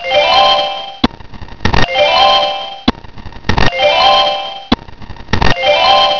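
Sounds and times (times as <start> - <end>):
chime: 0.0 - 1.0, 1.9 - 2.9, 3.7 - 4.7, 5.6 - 6.1.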